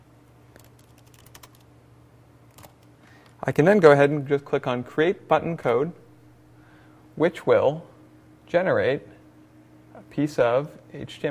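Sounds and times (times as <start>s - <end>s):
quiet steady hum: 0.0s - 11.2s
computer keyboard keystrokes: 0.5s - 1.7s, 2.5s - 2.8s
speech: 3.4s - 6.0s, 7.2s - 7.9s, 8.5s - 9.1s, 10.0s - 11.2s.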